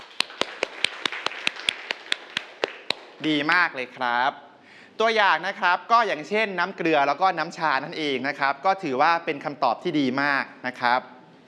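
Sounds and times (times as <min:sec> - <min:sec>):
students clapping for themselves: 0:00.0 - 0:03.3
soft hiss: 0:00.0 - 0:11.4
speech: 0:03.2 - 0:11.1.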